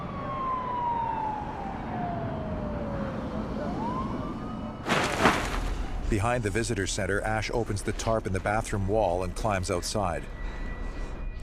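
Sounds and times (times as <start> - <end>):
police car siren wailing along a highway: 0.0 - 4.9
road rumble: 2.5 - 8.6
speech: 6.1 - 10.6.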